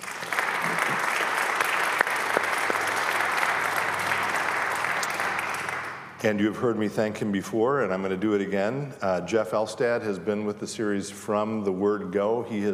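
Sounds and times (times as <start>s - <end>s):
audience applause: 0.0s - 6.2s
speech: 6.2s - 12.7s.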